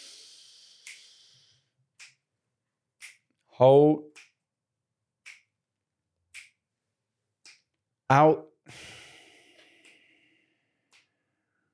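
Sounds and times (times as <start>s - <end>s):
finger snaps keeping count during a breathing exercise: 0.0s - 1.4s, 2.0s - 2.2s, 3.0s - 3.3s, 5.2s - 5.5s, 6.3s - 6.6s, 7.4s - 7.7s, 9.0s - 11.2s
speech: 3.6s - 4.1s, 8.1s - 8.8s.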